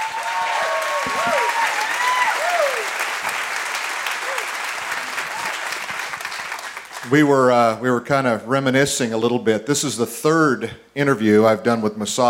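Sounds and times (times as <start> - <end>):
audience applause welcoming a guest on stage for an interview: 0.0 - 7.2
speech: 7.1 - 12.2.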